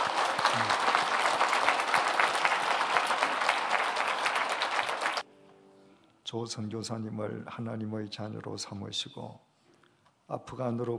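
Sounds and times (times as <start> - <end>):
audience applauding: 0.0 - 5.2
speech: 6.3 - 9.5, 10.3 - 10.9.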